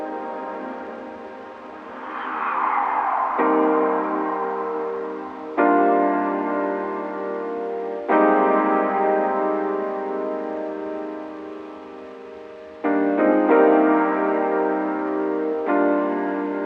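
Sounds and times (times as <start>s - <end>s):
soothing electric piano pads: 0.0s - 16.6s.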